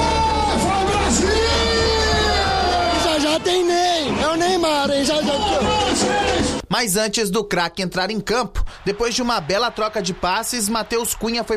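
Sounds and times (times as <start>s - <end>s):
football fans cheering and yelling in a bar: 0.0s - 6.6s, 8.8s - 11.5s
speech: 6.8s - 11.5s.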